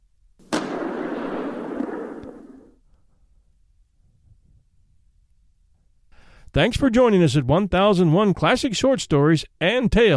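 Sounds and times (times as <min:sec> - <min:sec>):
booming rifle shot: 0:00.4 - 0:02.8
speech: 0:06.6 - 0:10.1.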